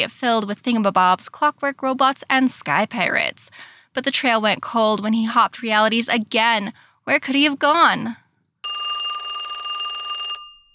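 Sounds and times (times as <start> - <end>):
speech: 0.0 - 8.2
telephone ringing with a bright electronic trill for an incoming caller: 8.6 - 10.7.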